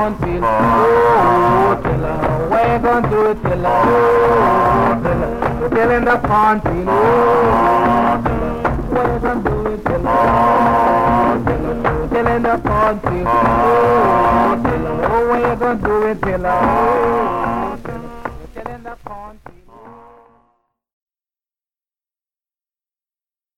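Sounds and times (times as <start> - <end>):
group of men singing: 0.0 - 20.4.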